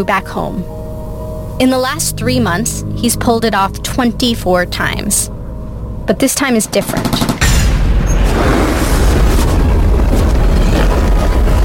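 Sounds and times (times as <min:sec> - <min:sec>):
speech: 0:00.0 - 0:00.8, 0:01.6 - 0:05.4, 0:06.1 - 0:07.3
explosion as plane is hit: 0:07.4 - 0:11.6
plane engine bursting into flames: 0:07.4 - 0:11.6.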